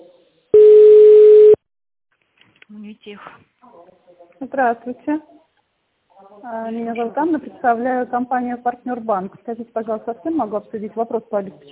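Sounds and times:
telephone tone while a call is transferred: 0.6 - 1.6
speech: 2.7 - 5.4, 6.4 - 11.7.

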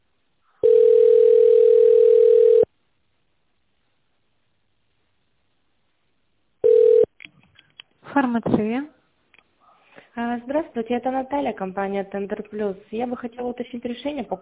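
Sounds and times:
telephone ringback tone: 0.6 - 2.7, 6.6 - 7.1
speech: 8.2 - 9.0, 10.2 - 14.4.

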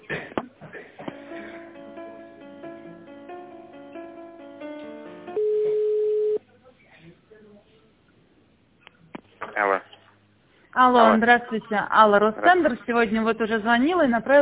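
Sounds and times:
telephone hold melody during a call transfer: 4.6 - 6.4
steady telephone tone: 5.3 - 6.4
speech: 10.8 - 14.4.

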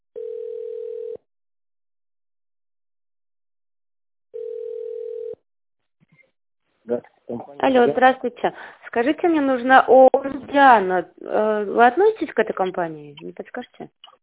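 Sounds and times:
telephone line waiting tone: 0.2 - 1.2, 4.4 - 5.4
speech: 6.9 - 14.2.

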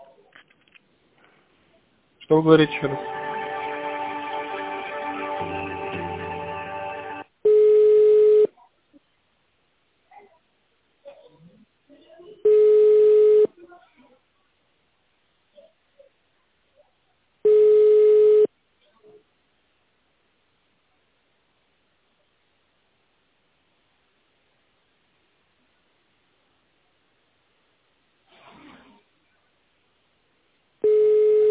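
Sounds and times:
speech: 2.3 - 3.1
phone ringback tone while a call connects: 7.5 - 8.5, 12.5 - 13.5, 17.5 - 18.5, 30.8 - 31.5.

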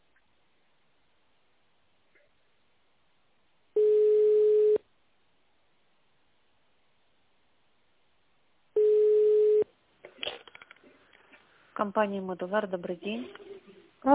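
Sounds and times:
telephone ringing tone while call transfers: 3.8 - 4.8, 8.8 - 9.6
speech: 11.8 - 13.4.

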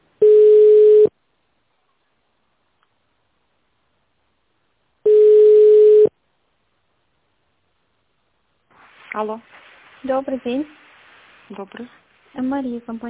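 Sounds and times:
telephone ringback tone: 0.2 - 1.1, 5.1 - 6.1
speech: 9.2 - 10.8, 11.5 - 13.0.

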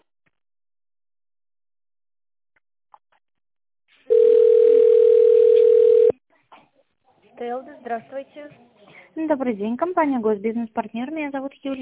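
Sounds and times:
telephone ringback tone: 4.1 - 6.1
speech: 7.4 - 11.8.

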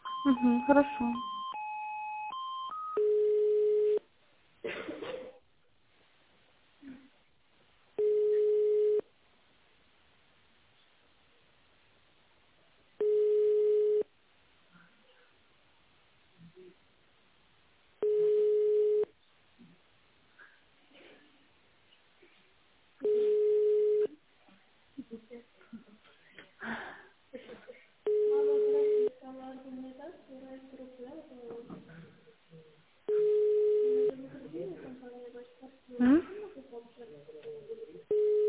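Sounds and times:
telephone line tones while a call is being transferred: 0.0 - 4.0, 8.0 - 9.0, 13.0 - 14.1, 18.0 - 19.1, 23.0 - 24.1, 33.1 - 34.1, 38.1 - 38.4
faint noise: 0.0 - 38.4
speech: 0.2 - 1.3.

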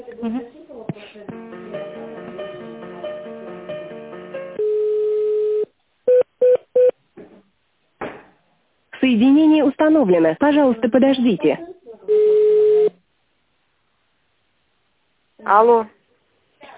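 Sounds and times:
speech: 0.2 - 0.6, 9.1 - 11.7, 15.5 - 16.0
steady held telephone tone during a call transfer: 4.6 - 6.9, 12.1 - 13.0.

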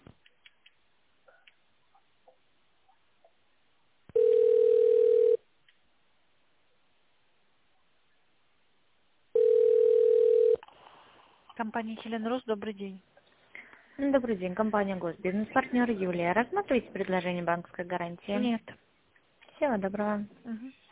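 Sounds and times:
telephone ringback tone while on hold: 4.2 - 5.4, 9.4 - 10.6
speech: 11.7 - 13.1, 14.0 - 18.8, 19.6 - 20.8.

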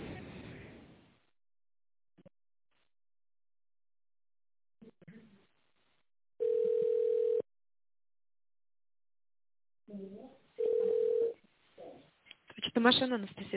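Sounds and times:
long steady telephone tones while waiting on the line: 6.4 - 7.5, 10.6 - 11.3
speech: 12.8 - 13.5.

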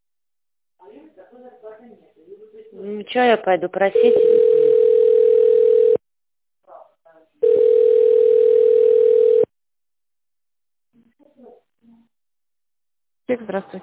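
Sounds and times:
speech: 0.9 - 4.5, 13.3 - 13.8
telephone ringback tones: 4.0 - 6.0, 7.4 - 9.5.

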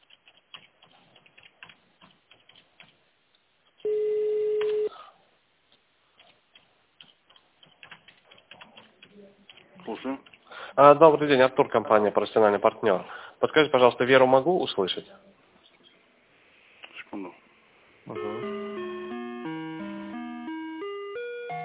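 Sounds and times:
telephone keypad tone: 3.8 - 4.9, 18.1 - 21.6
speech: 9.9 - 15.3.

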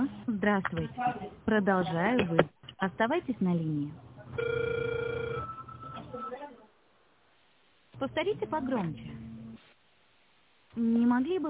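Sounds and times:
speech: 0.4 - 5.1, 8.0 - 9.2, 10.8 - 11.4
telephone ringing tone on an unanswered call: 4.4 - 6.4.

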